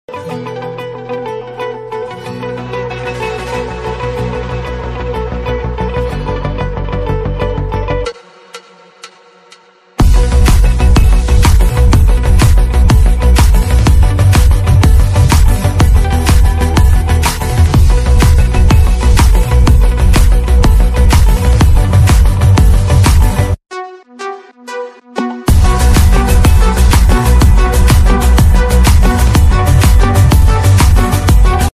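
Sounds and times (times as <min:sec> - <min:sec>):
background music ringtone: 0:00.1 - 0:31.7.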